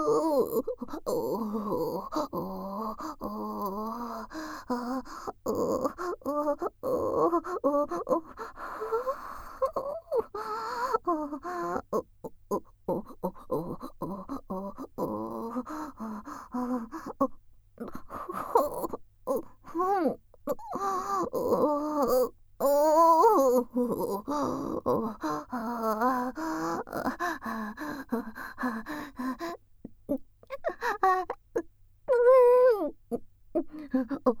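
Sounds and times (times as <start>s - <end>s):
person moaning: 0.0s - 34.3s
close breathing ASMR loop: 0.6s - 6.6s, 7.3s - 11.9s, 13.0s - 20.1s, 23.2s - 29.7s.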